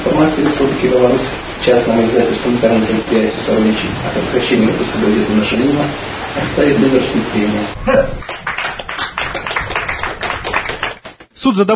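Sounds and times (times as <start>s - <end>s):
speech: 0.2s - 8.5s, 11.4s - 11.7s
people applauding in a Belarusian courtroom after a court decision: 7.9s - 11.2s.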